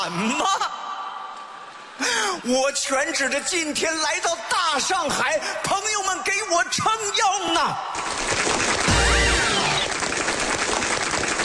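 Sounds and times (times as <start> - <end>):
speech: 0.0 - 0.8, 2.4 - 8.1
relatives clapping: 8.0 - 11.4.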